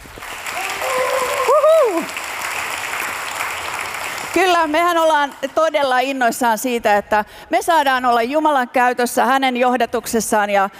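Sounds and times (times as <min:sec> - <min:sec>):
audience applause: 0:00.0 - 0:05.4
speech: 0:04.6 - 0:10.7.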